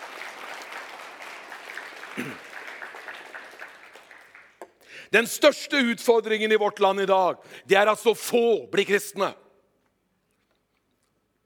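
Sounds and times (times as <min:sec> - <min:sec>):
audience applause: 0:00.0 - 0:04.8
speech: 0:02.2 - 0:02.5, 0:05.1 - 0:09.4.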